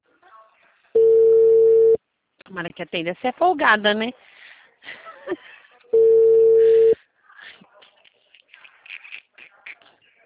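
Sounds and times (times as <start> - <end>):
unanswered telephone ringing tone: 1.0 - 2.0, 6.0 - 7.0
speech: 2.5 - 4.3, 5.3 - 5.5.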